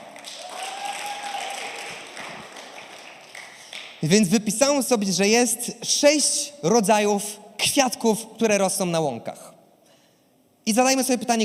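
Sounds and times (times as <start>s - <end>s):
crowd applauding for volunteers: 0.0s - 4.0s
speech: 4.0s - 9.5s, 10.7s - 11.4s.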